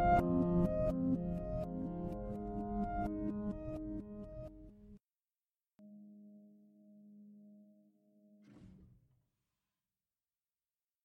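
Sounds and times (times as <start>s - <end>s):
reversed piano: 0.0s - 5.0s.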